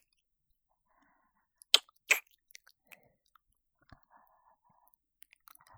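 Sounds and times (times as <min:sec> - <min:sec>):
ASMR kissing sounds: 0:01.7 - 0:02.2.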